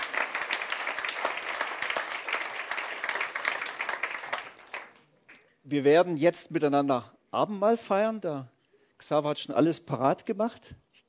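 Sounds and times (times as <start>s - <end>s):
audience applause: 0.0s - 5.0s
speech: 5.7s - 10.8s.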